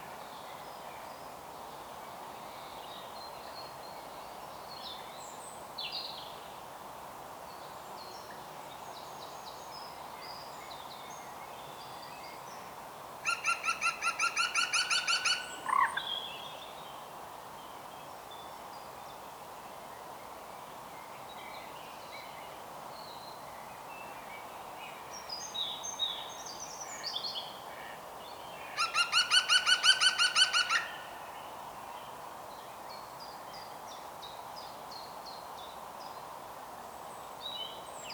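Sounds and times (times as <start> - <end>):
steady background hiss: 0.0 - 38.1
European green woodpecker laughing call: 13.3 - 16.0, 28.8 - 31.0.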